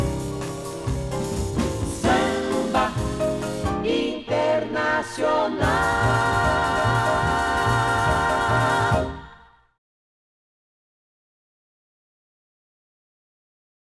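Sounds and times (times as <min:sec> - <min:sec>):
samba music: 0:00.0 - 0:09.5.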